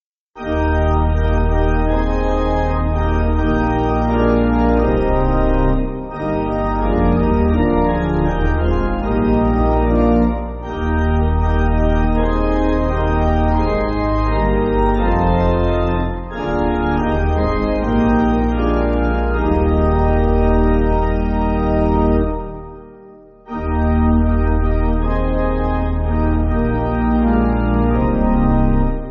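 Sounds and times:
pipe organ hymn: 0:00.4 - 0:29.0.

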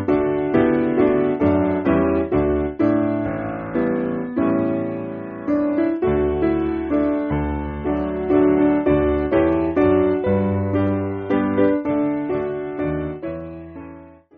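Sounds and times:
piano backing music for churches: 0:00.0 - 0:14.3.

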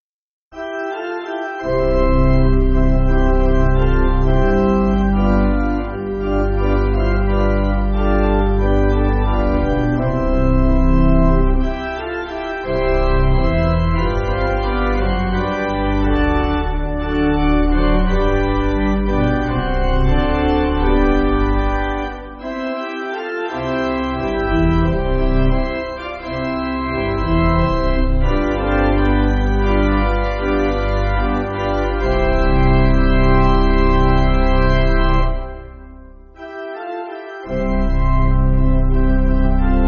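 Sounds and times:
pipe organ backing music for churches: 0:00.6 - 0:39.8.

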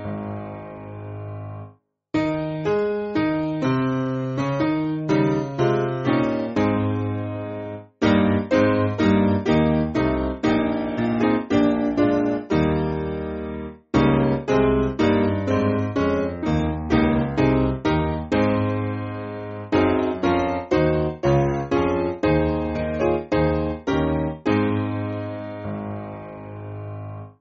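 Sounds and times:
hymn played on piano for small band in A flat: 0:00.0 - 0:27.3.

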